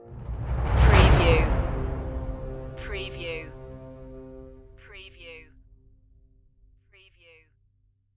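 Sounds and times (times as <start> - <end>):
cinematic emotional music stinger: 0.0 - 5.0.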